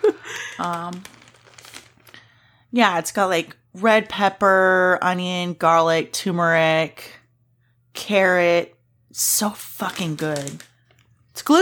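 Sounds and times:
snack bag crinkling: 0.0s - 2.4s, 9.6s - 11.2s
crunching snack chips: 0.1s - 2.3s
speech: 0.6s - 1.2s, 2.7s - 7.2s, 8.0s - 10.7s, 11.4s - 11.6s.

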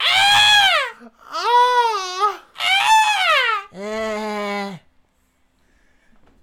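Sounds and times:
person screaming: 0.0s - 4.9s.

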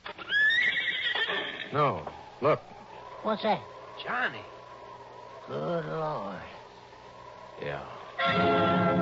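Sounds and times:
horse neighing: 0.2s - 2.0s
speech: 1.7s - 2.7s, 3.2s - 4.6s, 5.5s - 6.6s, 7.6s - 8.8s.

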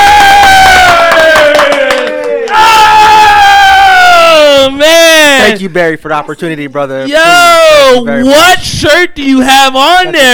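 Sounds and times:
scattered clapping: 0.0s - 2.6s
sustained whooping voices: 0.0s - 4.7s
crowd roaring and cheering: 0.0s - 4.8s
speech: 5.6s - 10.3s.

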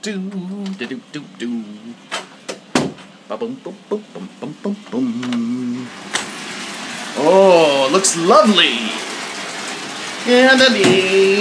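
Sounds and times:
speech: 0.0s - 2.2s, 3.3s - 6.3s, 7.2s - 9.1s, 10.2s - 11.3s
water running into a bath: 5.6s - 11.3s.

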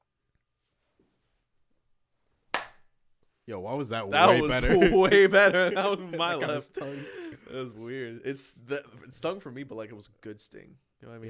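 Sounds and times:
hand clapping: 2.5s - 2.9s
speech: 3.5s - 11.2s
laughter: 4.2s - 7.9s.

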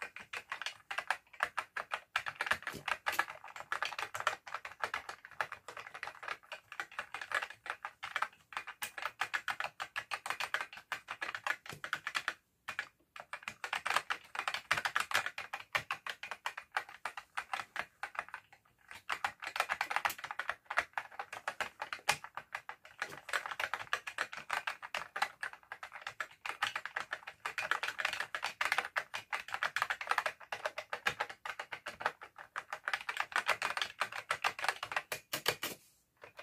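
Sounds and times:
touch typing on an old full-size computer keyboard: 0.0s - 36.4s.

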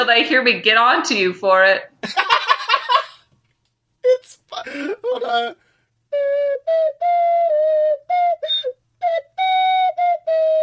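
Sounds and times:
speech: 0.0s - 2.4s, 4.5s - 10.6s
laughter: 2.0s - 3.2s, 4.6s - 5.5s
person whistling a melody: 6.2s - 10.6s.

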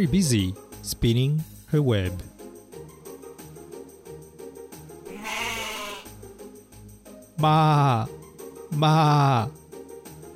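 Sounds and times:
speech: 0.0s - 2.3s, 7.4s - 9.6s
sheep bleating: 5.1s - 6.1s.

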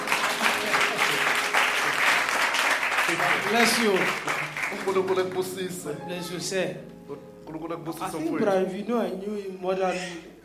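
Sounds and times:
audience clapping hands: 0.0s - 5.8s
speech: 3.1s - 10.3s.

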